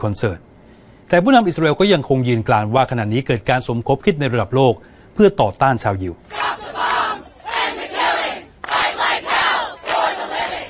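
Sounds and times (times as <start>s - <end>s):
speech: 0.0s - 0.5s, 1.1s - 6.4s
protest crowd chanting outside UN headquarters: 6.2s - 10.6s.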